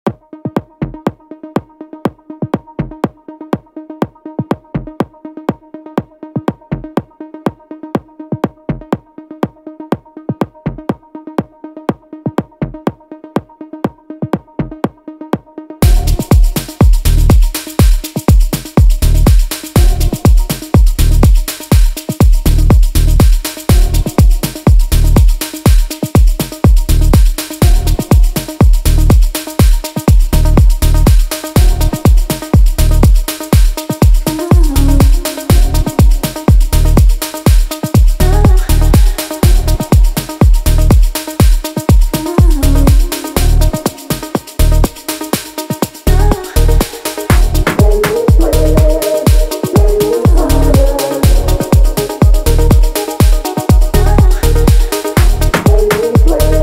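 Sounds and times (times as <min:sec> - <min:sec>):
melodic afro remix music: 0:00.0 - 0:56.6.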